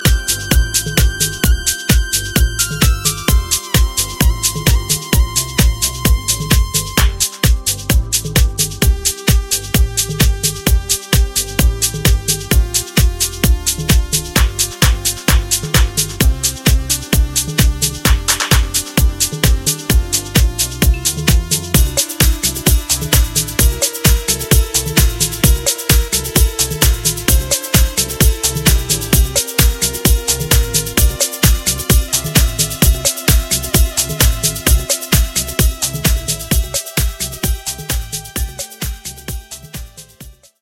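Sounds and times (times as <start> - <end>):
instrumental music: 0.0 - 40.5.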